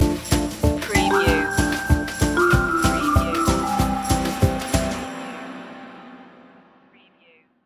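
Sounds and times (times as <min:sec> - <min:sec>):
musical stinger: 0:01.0 - 0:07.0.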